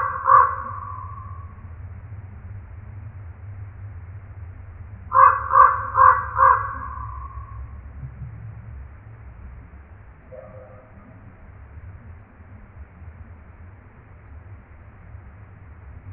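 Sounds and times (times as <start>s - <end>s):
common raven calling: 0.0s - 1.6s, 5.1s - 7.7s, 10.3s - 11.2s.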